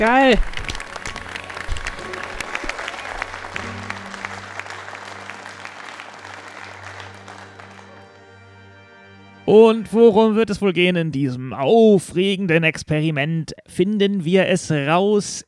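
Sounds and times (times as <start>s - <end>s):
speech: 0.0s - 0.6s, 9.5s - 15.4s
crowd applause: 0.0s - 8.3s.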